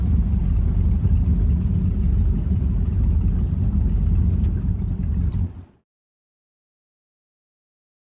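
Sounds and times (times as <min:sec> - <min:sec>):
offshore power boat starting away heard from interior: 0:00.0 - 0:05.8.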